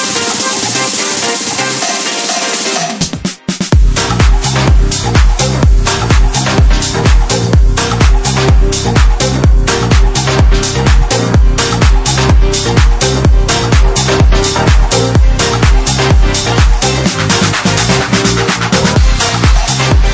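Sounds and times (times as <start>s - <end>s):
groove house music samples: 0.0s - 20.1s.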